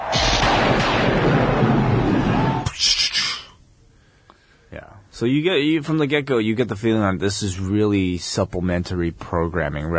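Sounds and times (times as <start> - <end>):
thunder sound effect: 0.0 - 2.7
speech: 5.2 - 9.9.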